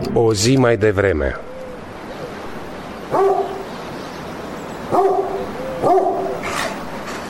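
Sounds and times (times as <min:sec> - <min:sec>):
speech: 0:00.2 - 0:01.5
dog barking: 0:03.1 - 0:03.7, 0:04.9 - 0:06.5.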